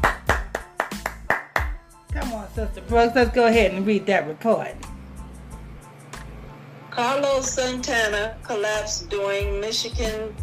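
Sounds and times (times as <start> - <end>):
person clapping hands: 0.0 - 1.8
speech: 2.6 - 4.8, 7.0 - 10.4.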